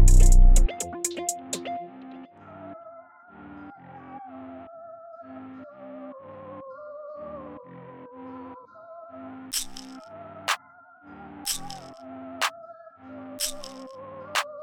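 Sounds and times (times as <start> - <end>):
music track: 0.0 - 2.2.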